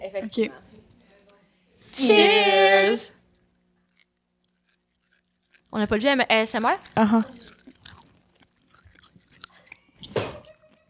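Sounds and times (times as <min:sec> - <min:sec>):
speech: 0:00.2 - 0:00.6, 0:02.0 - 0:03.2, 0:05.7 - 0:07.5
person chewing a hard candy: 0:03.2 - 0:10.8.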